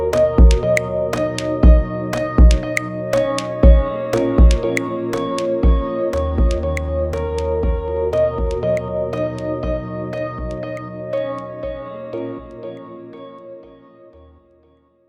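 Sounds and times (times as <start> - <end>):
music beat: 0.0 - 11.8.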